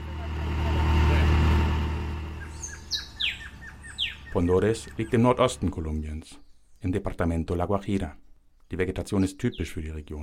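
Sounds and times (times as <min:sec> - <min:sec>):
vehicle engine noise during a ride: 0:00.0 - 0:06.6
bright high bird chirps: 0:02.2 - 0:07.0, 0:08.5 - 0:10.0
speech: 0:04.4 - 0:10.2.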